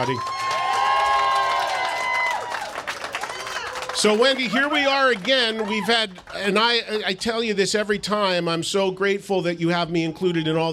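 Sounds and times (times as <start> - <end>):
speech: 0.0 - 0.3, 4.0 - 10.7
audience applause: 0.0 - 6.8.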